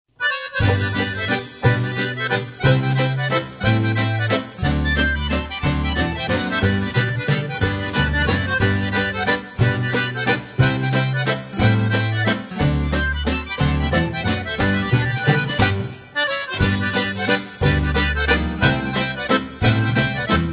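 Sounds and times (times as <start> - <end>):
toy accordion playing polka: 0.2 - 20.5.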